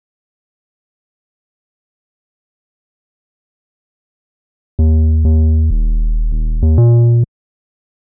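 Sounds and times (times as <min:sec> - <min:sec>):
sub bass: 0:04.8 - 0:07.3.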